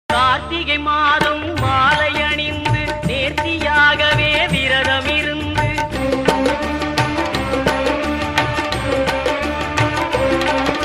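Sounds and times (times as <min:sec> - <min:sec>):
background music: 0:00.1 - 0:10.8.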